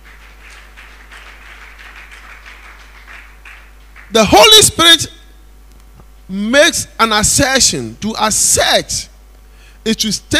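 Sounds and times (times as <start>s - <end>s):
church audience clapping hands: 0.0s - 4.6s
speech: 4.1s - 5.2s, 6.3s - 9.1s, 9.8s - 10.3s.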